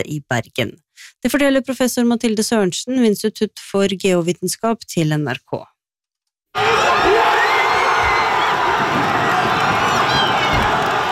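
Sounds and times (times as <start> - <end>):
speech: 0.0 - 5.7
crowd cheering at football match: 6.6 - 11.1.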